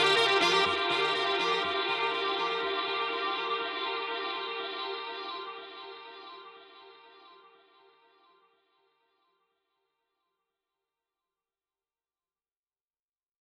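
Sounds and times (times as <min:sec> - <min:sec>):
saxophone: 0:00.0 - 0:08.4.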